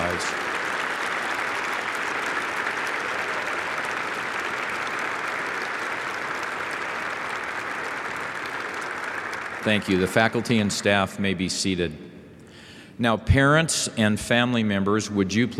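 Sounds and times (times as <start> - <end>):
applause from a large audience: 0.0 - 11.0
speech: 9.6 - 12.1, 13.0 - 15.5.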